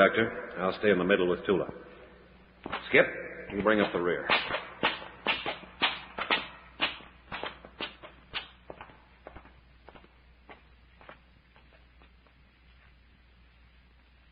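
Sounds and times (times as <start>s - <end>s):
speech: 0.0s - 1.9s, 2.6s - 4.6s
footsteps of several people climbing a long flight of steps: 2.6s - 13.0s.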